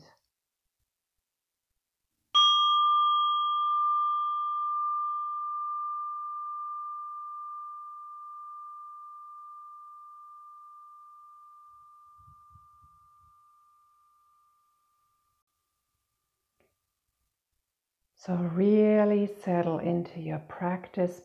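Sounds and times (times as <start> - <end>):
meditation bell ringing: 2.4 - 15.4
speech: 18.2 - 21.2.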